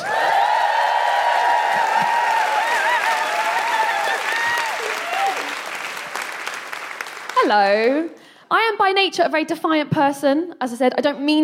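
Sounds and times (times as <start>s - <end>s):
crowd cheering and whooping: 0.0s - 7.0s
dense applause: 0.0s - 7.8s
speech: 7.5s - 11.4s.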